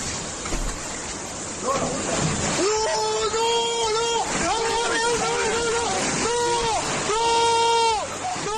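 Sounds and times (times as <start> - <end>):
floodwater rushing in Toledo: 0.0 - 8.5.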